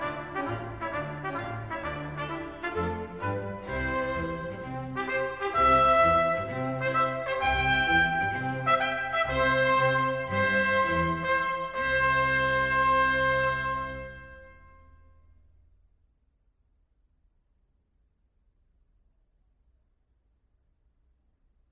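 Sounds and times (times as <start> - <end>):
wedding march music: 0.0 - 14.5.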